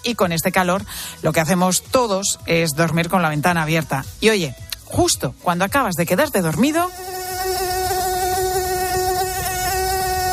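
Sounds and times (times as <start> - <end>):
speech: 0.0 - 7.2
mosquito buzzing at night in summer heat: 6.7 - 10.3.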